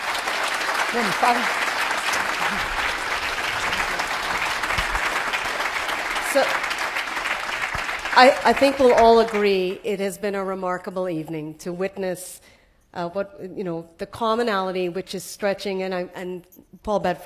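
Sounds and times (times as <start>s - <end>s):
audience applause: 0.0s - 9.7s
speech: 0.9s - 1.6s, 6.3s - 6.7s, 8.2s - 17.2s.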